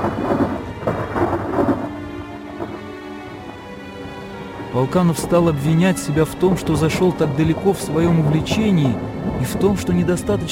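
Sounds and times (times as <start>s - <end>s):
thunder: 0.0s - 3.6s, 6.5s - 10.5s
rain on a window: 0.0s - 5.3s, 6.0s - 10.5s
speech: 4.8s - 10.5s.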